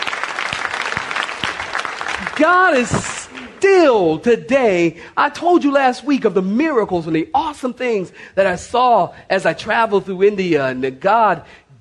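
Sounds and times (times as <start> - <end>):
audience clapping: 0.0 - 3.9
speech: 2.4 - 11.6.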